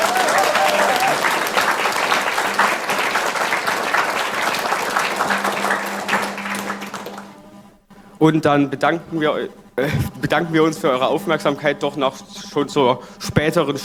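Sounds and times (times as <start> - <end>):
audience applause: 0.0 - 7.7
laughter: 0.0 - 7.7, 8.9 - 13.8
speech: 8.2 - 13.8.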